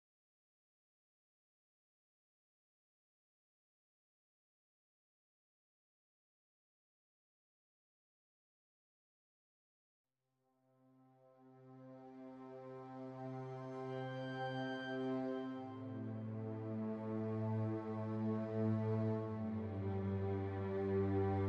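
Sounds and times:
strings: 11.6 - 21.4.

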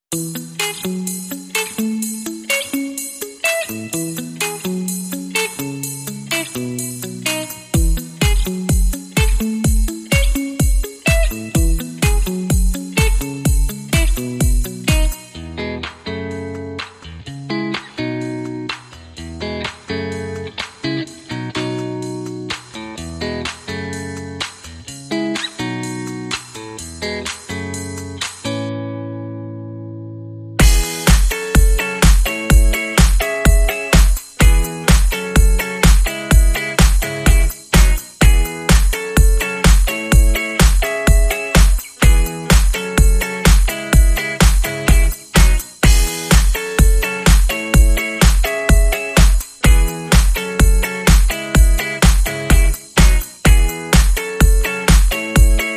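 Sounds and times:
funk guitar: 0.1 - 55.7
main beat: 7.8 - 15.2, 30.6 - 55.7.

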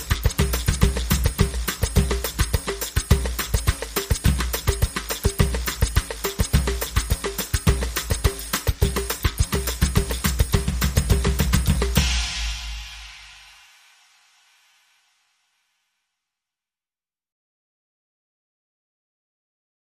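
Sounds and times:
samba loop: 0.0 - 14.4.

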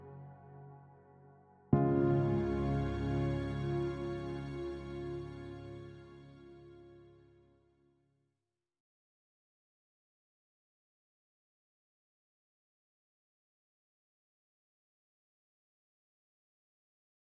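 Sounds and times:
ambient music: 0.0 - 7.4.

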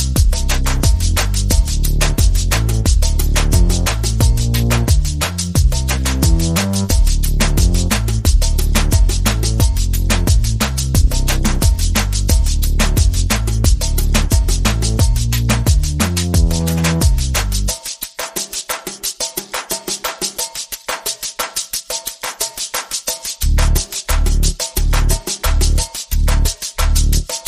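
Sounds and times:
bass: 0.0 - 17.7, 23.4 - 27.4
percussion: 0.0 - 27.4.

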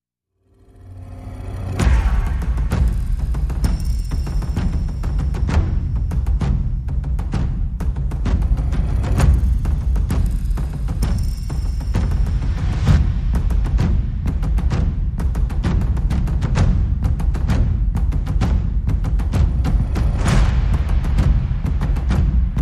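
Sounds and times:
percussion: 0.5 - 22.6.

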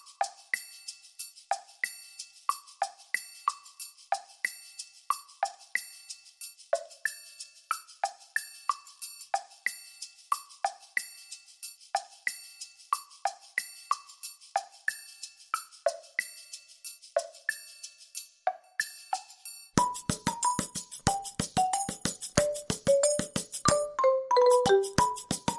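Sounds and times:
light percussion: 0.0 - 25.5
mallets: 19.8 - 25.5.

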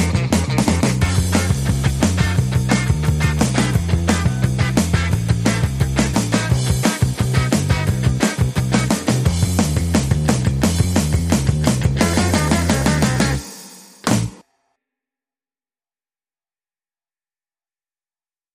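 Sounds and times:
guitar: 0.0 - 14.4.

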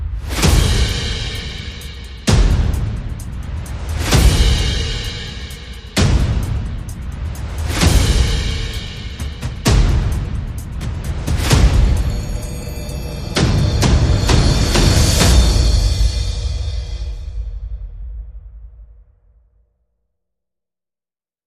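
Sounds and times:
percussion: 0.0 - 18.9
sound effects: 11.3 - 16.4.

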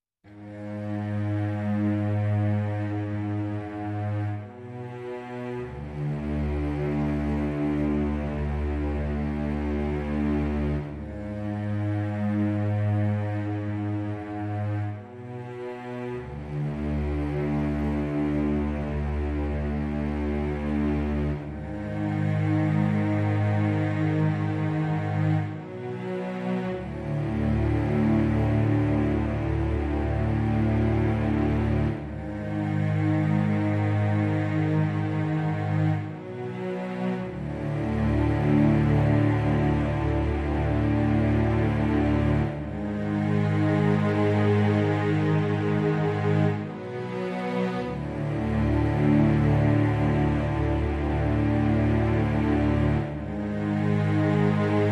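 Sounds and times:
strings: 0.0 - 54.9.

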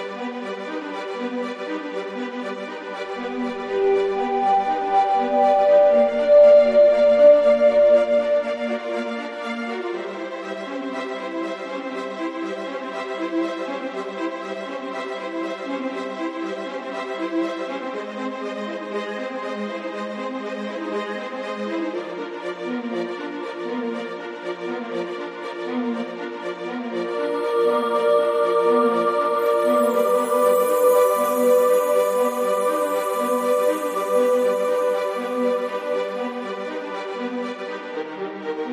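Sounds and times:
strings: 0.0 - 20.0, 21.8 - 38.7
ambience: 3.2 - 10.0, 27.0 - 37.8.

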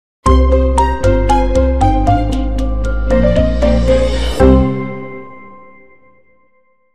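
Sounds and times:
short musical sting: 0.3 - 6.2.

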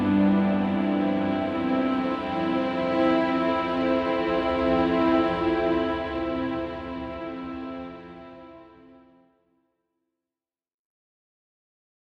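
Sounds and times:
legato strings: 0.0 - 8.8.

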